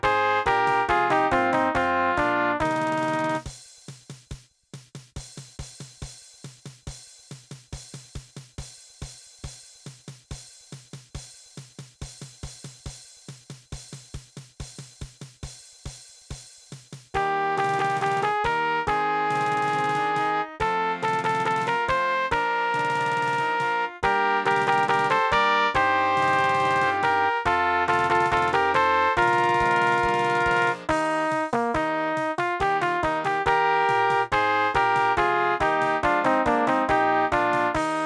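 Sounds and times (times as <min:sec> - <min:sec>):
trumpet: 0:00.0 - 0:03.4, 0:17.2 - 0:38.0.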